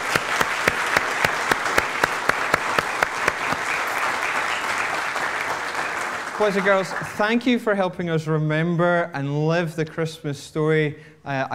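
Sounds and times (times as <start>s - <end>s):
audience applause: 0.0s - 7.3s
speech: 6.4s - 11.5s.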